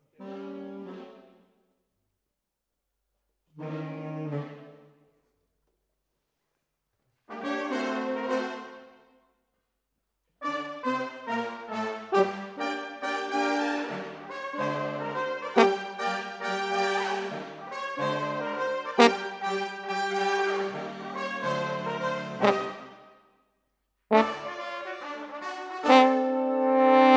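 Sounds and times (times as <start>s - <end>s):
horns: 7.3s - 9.0s, 10.4s - 23.1s, 24.1s - 27.1s.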